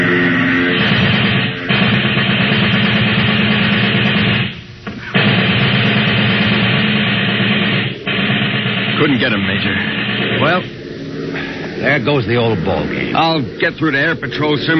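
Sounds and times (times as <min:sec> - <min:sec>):
plane engine roar: 0:00.0 - 0:04.3, 0:05.7 - 0:14.7
submachine gun fire at a plane: 0:00.7 - 0:10.7
speech: 0:12.0 - 0:14.7.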